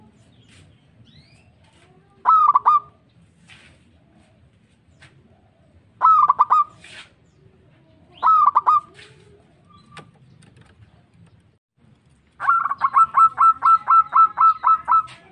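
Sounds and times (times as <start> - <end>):
zebra dove cooing: 2.2 - 3.0, 5.3 - 6.8, 8.0 - 9.8, 12.4 - 15.3.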